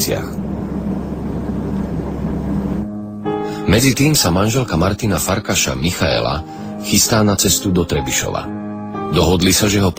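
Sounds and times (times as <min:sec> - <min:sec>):
speech: 0:00.0 - 0:00.4, 0:03.7 - 0:09.9
Antonov An-24 airplane in flight after takeoff: 0:00.0 - 0:03.5.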